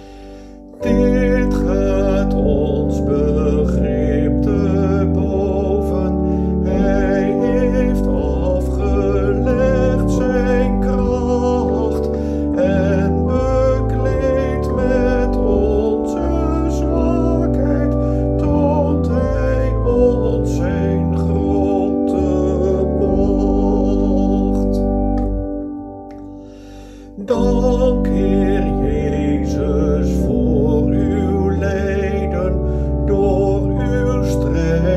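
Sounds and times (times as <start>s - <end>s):
soprano singing: 0.0s - 26.4s, 27.2s - 34.9s.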